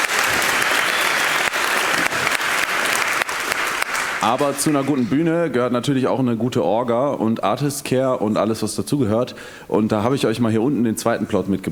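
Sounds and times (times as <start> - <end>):
big audience applause: 0.0 - 5.2
speech: 4.2 - 11.7.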